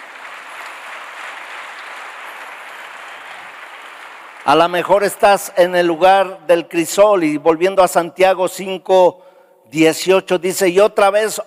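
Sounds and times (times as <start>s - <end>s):
applause: 0.0s - 6.3s
speech: 4.4s - 11.4s.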